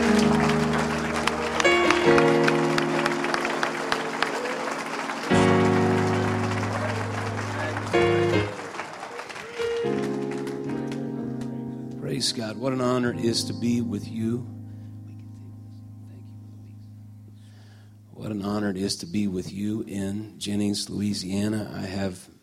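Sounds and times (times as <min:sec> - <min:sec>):
audience clapping hands: 0:00.0 - 0:11.6
speech: 0:12.3 - 0:14.6, 0:18.8 - 0:22.3.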